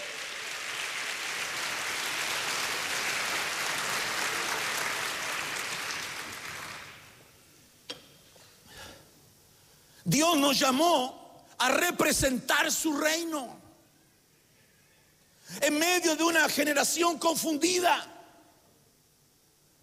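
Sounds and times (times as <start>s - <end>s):
audience clapping hands: 0.0s - 7.3s
speech: 10.1s - 13.6s, 15.6s - 18.1s.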